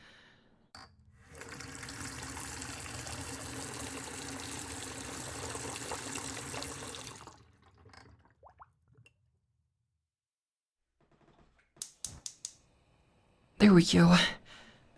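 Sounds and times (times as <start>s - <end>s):
tap water pouring into an electric kettle: 1.2s - 9.0s
speech: 13.6s - 14.4s.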